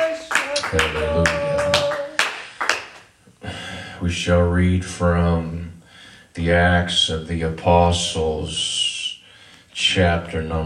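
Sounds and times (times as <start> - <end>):
audience clapping: 0.0 - 3.2
speech: 0.7 - 1.4, 4.1 - 5.7, 6.4 - 8.8, 9.8 - 10.6.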